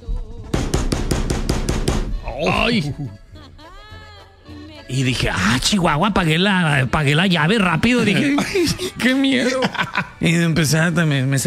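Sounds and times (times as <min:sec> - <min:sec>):
knocking on a door: 0:00.6 - 0:02.2
speech: 0:02.4 - 0:03.2, 0:04.9 - 0:11.4
laughter: 0:07.6 - 0:10.5.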